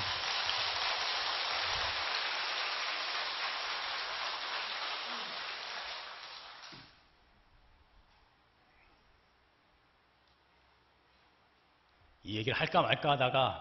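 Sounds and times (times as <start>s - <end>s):
crowd applause: 0.0s - 6.7s
speech: 12.3s - 13.6s.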